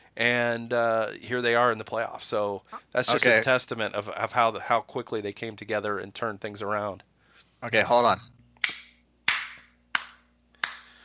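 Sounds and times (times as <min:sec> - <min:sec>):
speech: 0:00.2 - 0:08.4
slow sparse golf clap: 0:08.6 - 0:11.0.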